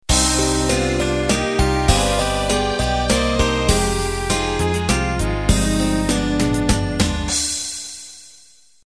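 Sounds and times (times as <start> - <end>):
waltz intro music: 0.1 - 7.5.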